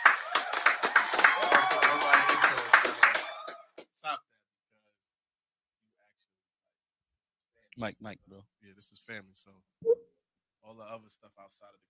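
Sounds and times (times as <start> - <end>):
applause from small group: 0.0 - 4.0
speech: 7.8 - 10.0, 10.6 - 11.8.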